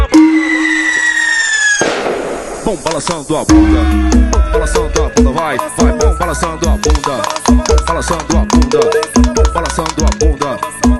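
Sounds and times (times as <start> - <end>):
loud sustained whistling tone sinking in pitch: 0.2 - 1.8
firecracker explosion: 0.4 - 3.5
speech: 2.7 - 10.7.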